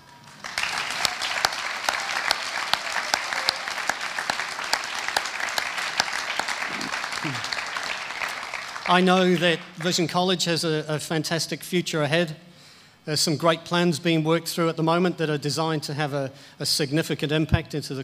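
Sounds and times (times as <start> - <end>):
audience applause: 0.0 - 10.1
speech: 8.9 - 18.0.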